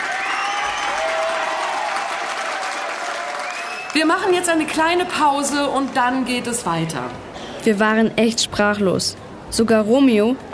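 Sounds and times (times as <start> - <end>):
applause: 0.0 - 4.4
speech: 4.0 - 10.5.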